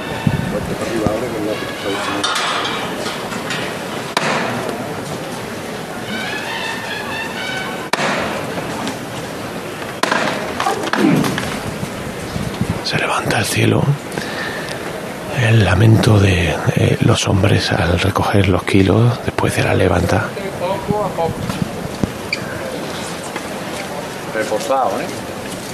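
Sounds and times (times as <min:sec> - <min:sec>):
crowd murmur: 0:00.0 - 0:25.7
speech: 0:00.7 - 0:02.8, 0:12.9 - 0:14.0, 0:15.5 - 0:21.6, 0:24.4 - 0:25.3
hammer knocks: 0:02.1 - 0:04.8, 0:07.9 - 0:08.6.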